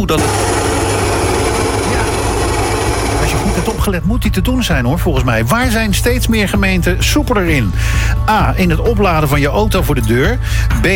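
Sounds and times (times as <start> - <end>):
speech: 0.0 - 0.5, 3.3 - 10.9
coffee machine grinding and humming: 0.0 - 3.9.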